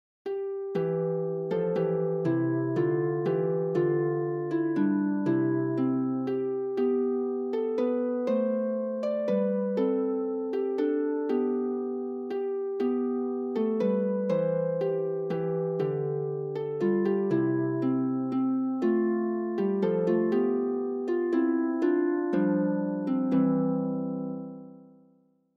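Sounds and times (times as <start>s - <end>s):
harp: 0.3s - 25.2s.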